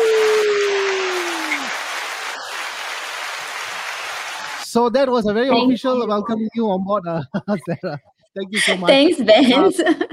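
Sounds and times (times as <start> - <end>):
audience applause: 0.0 - 4.8
speech: 4.8 - 10.1
laughter: 6.8 - 10.1.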